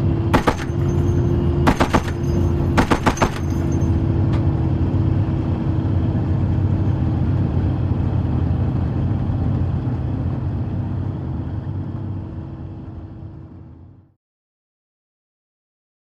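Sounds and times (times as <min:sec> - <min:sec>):
APC interior driving: 0:00.0 - 0:14.2
dual 50 caliber machine gun firing: 0:00.3 - 0:03.9.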